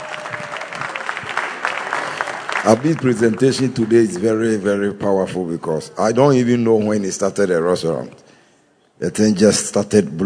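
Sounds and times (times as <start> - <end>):
audience clapping hands for the Duku family: 0.0 - 4.8
speech: 2.6 - 8.3, 9.0 - 10.2.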